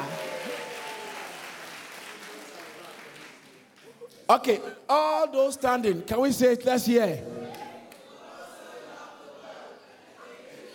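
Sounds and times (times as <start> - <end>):
audience clapping: 0.0 - 4.2
speech: 4.3 - 7.3.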